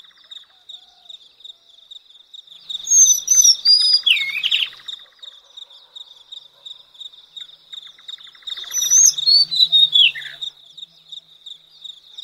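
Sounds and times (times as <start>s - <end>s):
Madagascar magpie-robin singing: 2.9s - 4.8s, 8.3s - 10.6s.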